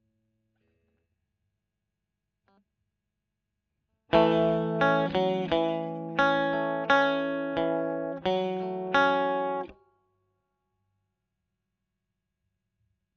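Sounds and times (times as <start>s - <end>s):
electric guitar recorded with Royer microphone: 4.1s - 9.8s.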